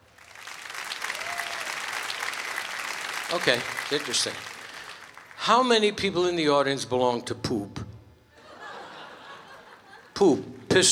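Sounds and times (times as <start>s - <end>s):
audience applause: 0.0s - 5.5s
speech: 3.3s - 4.5s, 5.4s - 7.8s, 10.2s - 10.9s
laughter: 8.4s - 10.2s.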